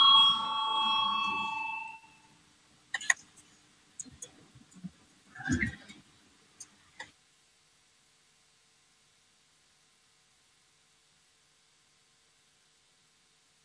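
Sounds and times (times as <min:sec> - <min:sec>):
parliament electronic voting bell: 0:00.0 - 0:02.1.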